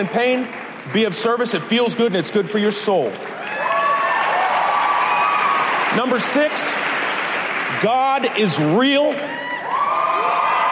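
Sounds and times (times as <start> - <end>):
speech: 0.0 - 3.8, 5.9 - 7.0, 7.7 - 9.5
audience applauding: 0.0 - 10.6
crowd whooping and cheering: 3.2 - 8.2, 9.0 - 10.6.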